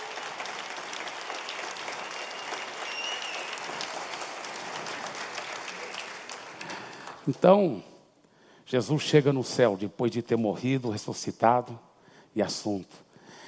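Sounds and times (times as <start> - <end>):
audience applause: 0.0 - 7.3
speech: 7.3 - 7.9, 8.7 - 13.0.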